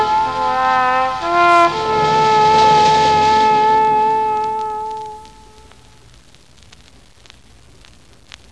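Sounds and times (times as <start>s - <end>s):
bugle call: 0.0s - 5.7s.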